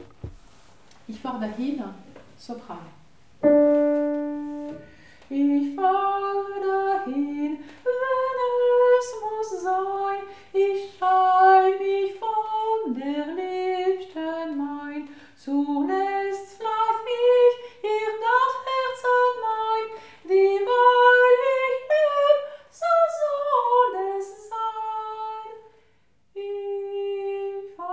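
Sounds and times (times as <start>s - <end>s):
soprano singing: 3.4s - 25.6s.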